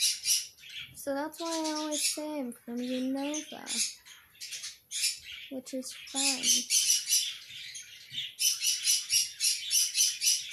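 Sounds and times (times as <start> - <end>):
parrots screaming: 0.0 - 0.9, 3.4 - 10.5
speech: 1.0 - 4.0, 5.5 - 6.9.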